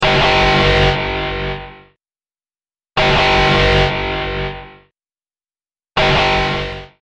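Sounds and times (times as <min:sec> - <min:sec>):
radioactive red zone alarm: 0:00.0 - 0:02.0, 0:03.0 - 0:04.9, 0:06.0 - 0:07.0.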